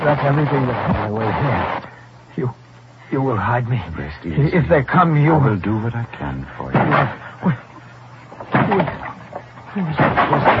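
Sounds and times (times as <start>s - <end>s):
speech: 0.0s - 7.7s, 8.5s - 9.1s, 9.8s - 10.5s
door being broken down: 6.7s - 7.2s, 8.4s - 10.5s.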